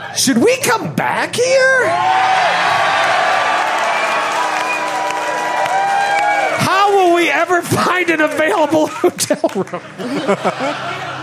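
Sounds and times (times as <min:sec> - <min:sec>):
speech: 0:00.2 - 0:02.8, 0:06.9 - 0:11.1
large live audience cheering and whooping: 0:01.8 - 0:09.2
scattered clapping: 0:03.5 - 0:07.4, 0:08.2 - 0:09.8
laughter: 0:08.4 - 0:11.2.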